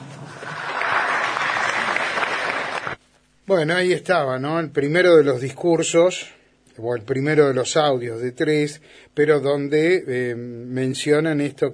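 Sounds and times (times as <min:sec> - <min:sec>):
audience applause: 0:00.0 - 0:03.0
speech: 0:03.5 - 0:11.7.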